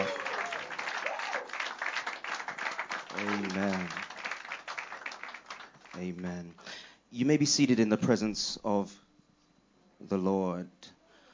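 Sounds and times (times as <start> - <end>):
congregation shouting: 0.0 - 1.6
church congregation clapping to praise God: 0.0 - 6.4
speech: 3.2 - 4.0, 6.0 - 9.0, 10.0 - 10.8.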